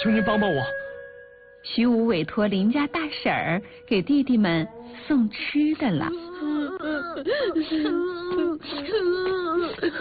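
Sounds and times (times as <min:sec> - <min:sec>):
speech: 0:00.0 - 0:00.8, 0:01.6 - 0:09.9
children crying and whimpering: 0:06.0 - 0:09.9.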